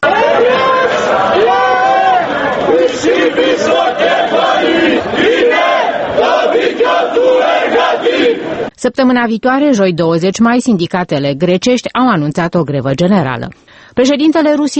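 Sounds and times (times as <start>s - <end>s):
protesters in Athens chanting slogans: 0.0s - 8.7s
speech: 8.8s - 14.7s.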